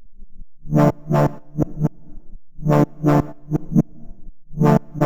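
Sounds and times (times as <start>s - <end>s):
deep house grooves: 0.7s - 1.9s, 2.7s - 5.0s.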